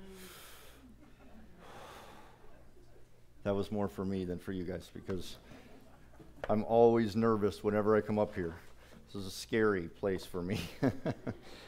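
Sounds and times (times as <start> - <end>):
person taking a deep breath: 0.0 - 1.0, 1.6 - 2.6
speech: 3.5 - 5.6, 6.4 - 11.6
laughter: 5.4 - 6.5, 10.5 - 11.6.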